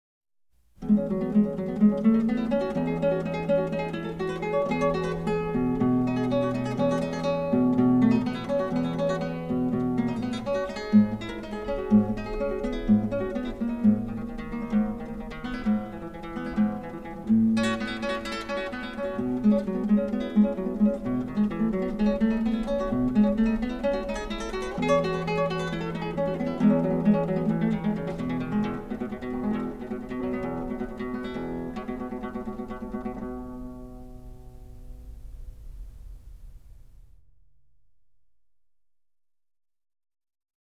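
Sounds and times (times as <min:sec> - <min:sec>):
guitar: 0:00.8 - 0:36.6.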